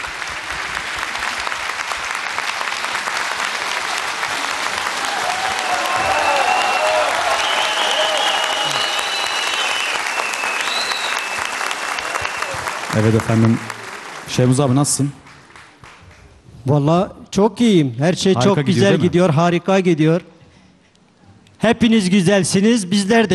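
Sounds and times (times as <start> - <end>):
audience applause: 0.0 - 16.2
faint voices and whoops: 5.0 - 11.2
speech: 13.0 - 15.2, 16.7 - 20.3, 21.6 - 23.3.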